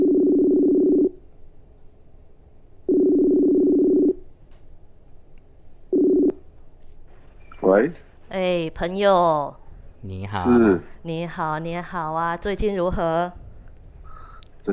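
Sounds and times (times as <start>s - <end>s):
phone ringback tone: 0.0s - 1.2s, 2.9s - 4.2s, 6.0s - 6.3s
speech: 7.7s - 13.4s.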